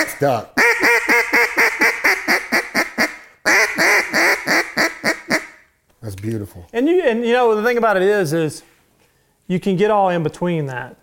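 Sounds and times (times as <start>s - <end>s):
duck hen quacks from a duck call: 0.0s - 5.7s
speech: 0.1s - 0.9s, 6.2s - 8.7s, 9.5s - 11.0s.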